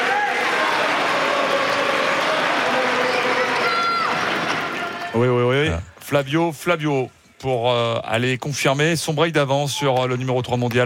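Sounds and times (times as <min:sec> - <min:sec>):
tennis crowd cheering at Court Philippe-Chatrier: 0:00.0 - 0:05.5
speech: 0:05.2 - 0:10.8.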